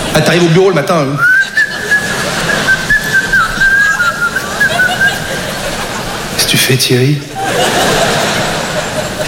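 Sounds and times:
speech: 0:00.2 - 0:01.6, 0:06.7 - 0:07.3
person whistling a tune: 0:01.2 - 0:05.1
laughter: 0:01.2 - 0:06.4, 0:07.2 - 0:09.2.

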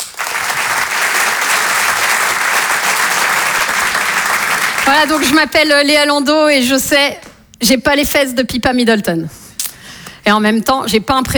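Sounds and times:
audience applause: 0:00.0 - 0:05.4
speech: 0:04.9 - 0:09.4, 0:10.3 - 0:11.3.

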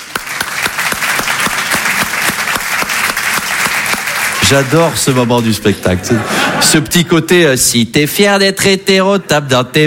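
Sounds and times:
audience applause: 0:00.0 - 0:06.1
laughter: 0:03.8 - 0:07.3
speech: 0:04.5 - 0:09.8.

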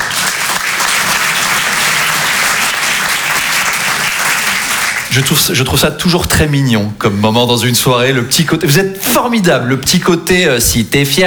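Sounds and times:
audience applause: 0:00.0 - 0:05.6
speech: 0:05.2 - 0:11.2.

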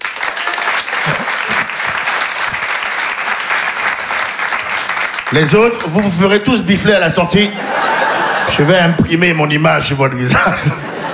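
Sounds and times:
audience applause: 0:00.0 - 0:07.0, 0:07.6 - 0:09.0, 0:10.8 - 0:11.1
laughter: 0:00.2 - 0:11.1
speech: 0:05.3 - 0:07.9, 0:08.5 - 0:10.9.

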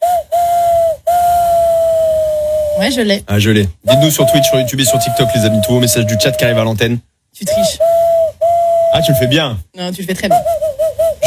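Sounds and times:
human voice imitating a train whistle: 0:00.0 - 0:03.0, 0:03.8 - 0:06.8, 0:07.5 - 0:09.6, 0:10.3 - 0:11.2
speech: 0:02.8 - 0:07.8, 0:08.9 - 0:10.6.

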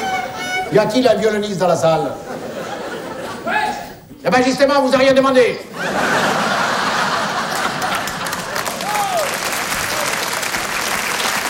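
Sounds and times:
speech: 0:00.7 - 0:02.3, 0:04.2 - 0:06.2
laughter: 0:02.1 - 0:04.0, 0:05.6 - 0:10.4
audience applause: 0:05.8 - 0:11.4.

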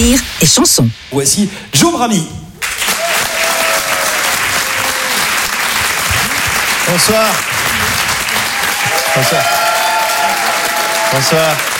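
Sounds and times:
speech: 0:00.0 - 0:02.5, 0:06.9 - 0:07.9, 0:09.2 - 0:09.6, 0:11.1 - 0:11.7
audience applause: 0:02.6 - 0:11.7.

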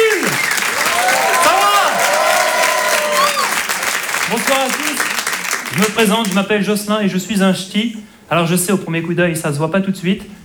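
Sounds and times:
audience whistles: 0:00.0 - 0:04.2
audience shouts: 0:00.0 - 0:05.8
comedy festival audience applauding a comedian: 0:00.0 - 0:06.6
speech: 0:05.8 - 0:10.4.

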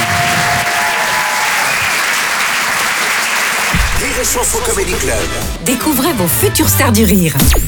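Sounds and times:
whistle or cheer: 0:00.0 - 0:02.4
audience applause: 0:00.0 - 0:05.1
speech: 0:04.2 - 0:07.6.

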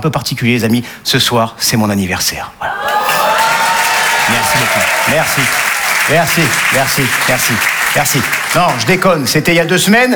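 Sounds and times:
speech: 0:00.0 - 0:03.2, 0:04.3 - 0:10.1
comedy show audience applause at the Apollo Théâtre: 0:02.7 - 0:09.1.

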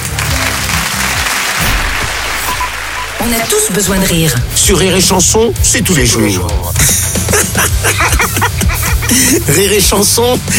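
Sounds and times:
audience applause: 0:00.0 - 0:04.5
speech: 0:03.3 - 0:10.5
laughter: 0:06.8 - 0:09.9.

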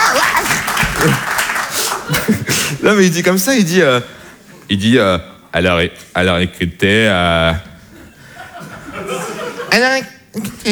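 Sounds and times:
audience clapping: 0:00.0 - 0:02.7
laughter: 0:00.0 - 0:02.9, 0:07.9 - 0:10.0
speech: 0:01.0 - 0:01.3, 0:02.8 - 0:07.7, 0:09.8 - 0:10.7.

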